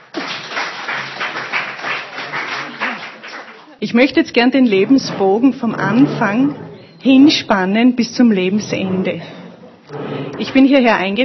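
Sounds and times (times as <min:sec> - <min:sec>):
audience applause: 0:00.0 - 0:03.8
speech: 0:03.8 - 0:11.2.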